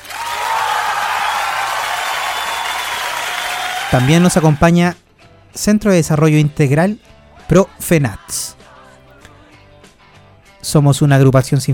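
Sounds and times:
applause: 0:00.0 - 0:04.6
speech: 0:03.9 - 0:05.0, 0:05.6 - 0:08.6, 0:10.6 - 0:11.7.

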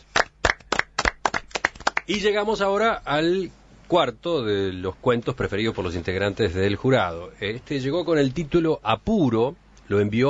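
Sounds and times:
audience applause: 0:00.0 - 0:02.1
speech: 0:02.1 - 0:10.2.

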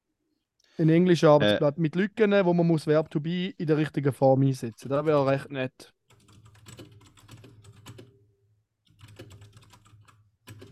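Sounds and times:
speech: 0:00.8 - 0:06.0
computer keyboard typing: 0:04.7 - 0:05.4, 0:06.1 - 0:08.2, 0:08.8 - 0:10.6.

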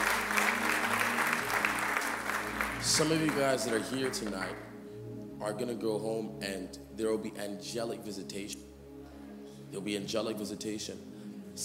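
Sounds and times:
audience applause: 0:00.0 - 0:04.7
speech: 0:02.8 - 0:04.7, 0:05.4 - 0:08.7, 0:09.7 - 0:11.6.

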